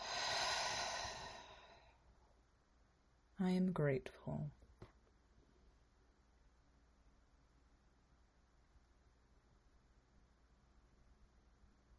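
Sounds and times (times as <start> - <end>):
slow exhale during a guided breathing exercise: 0.0 - 2.1
speech: 3.4 - 4.6.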